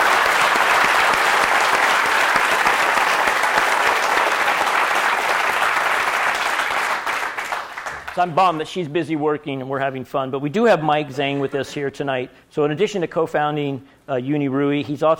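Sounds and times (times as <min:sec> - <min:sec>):
audience applause: 0:00.0 - 0:08.4
speech: 0:08.2 - 0:15.1.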